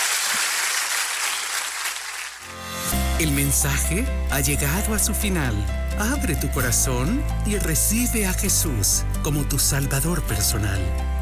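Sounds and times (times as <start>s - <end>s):
audience applause: 0.0s - 2.5s
speech: 3.2s - 11.1s.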